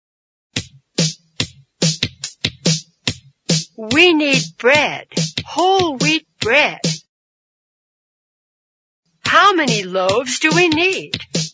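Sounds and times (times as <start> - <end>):
hands clapping a rhythm: 1.8 - 7.0, 9.6 - 11.5
speech: 3.8 - 7.0, 9.3 - 11.5.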